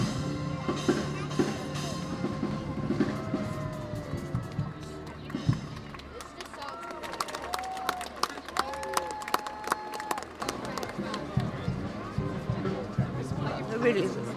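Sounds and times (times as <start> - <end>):
outdoor crowd chatter: 0.0 - 14.3
people clapping: 4.0 - 11.9.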